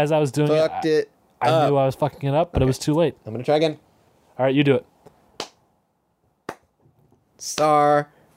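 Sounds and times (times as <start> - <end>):
speech: 0.0 - 3.8, 4.4 - 5.5, 7.4 - 8.2
slow sarcastic hand claps: 5.4 - 5.6, 6.5 - 6.7.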